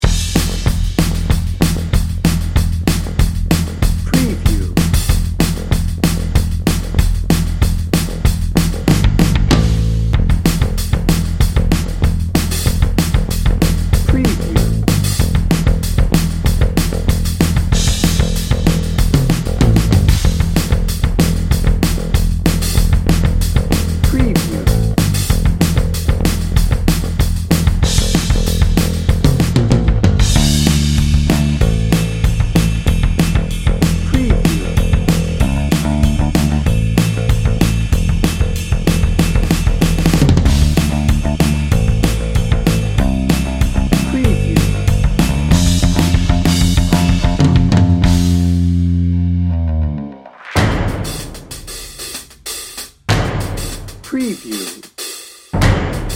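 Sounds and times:
rock drum and bass track: 0.0s - 56.1s.

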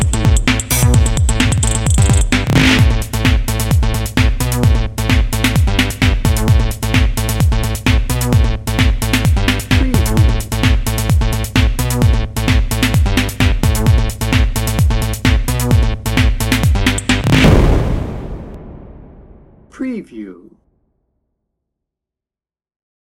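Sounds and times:
energetic electro drum and bass music: 0.0s - 17.6s.

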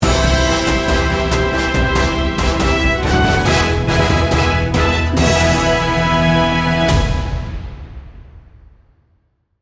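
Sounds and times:
triumphant heroes sting bumper: 0.0s - 7.6s.

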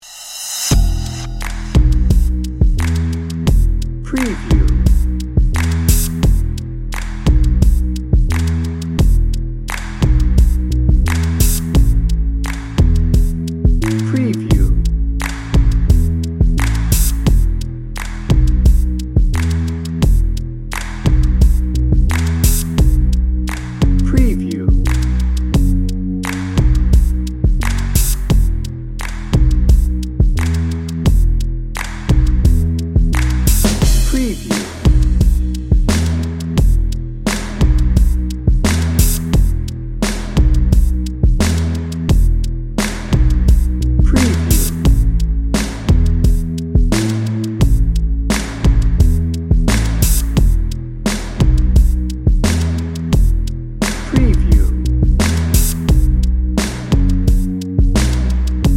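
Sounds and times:
drum and bass music: 0.0s - 58.7s.

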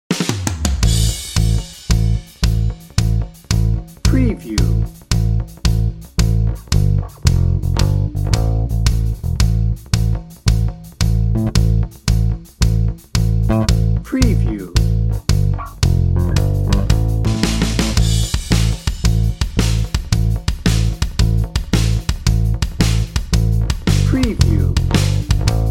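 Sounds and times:
drum and bass: 0.1s - 25.7s.

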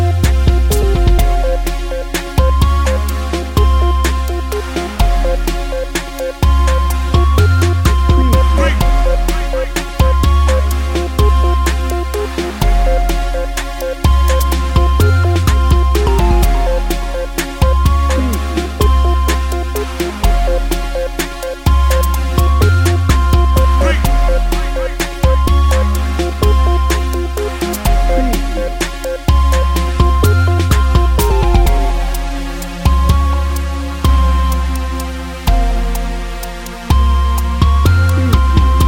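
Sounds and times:
smooth chill music: 0.0s - 38.8s.

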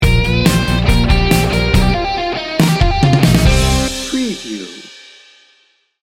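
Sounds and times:
biker ride music sting bumper: 0.0s - 5.0s.

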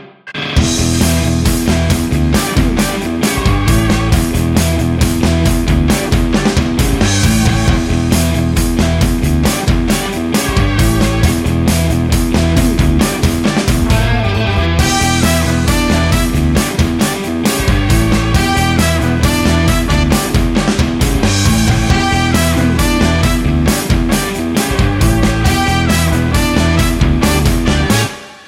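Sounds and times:
party music: 0.3s - 28.4s.

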